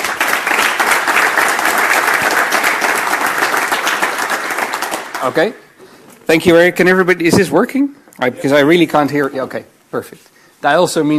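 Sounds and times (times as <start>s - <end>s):
large audience clapping: 0.0s - 5.6s
speech: 5.2s - 5.6s, 6.3s - 11.1s.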